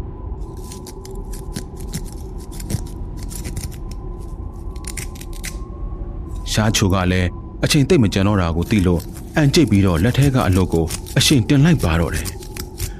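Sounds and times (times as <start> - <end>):
small knife cutting through a rope: 0.5 - 5.6, 8.6 - 12.9
speech: 6.6 - 12.4.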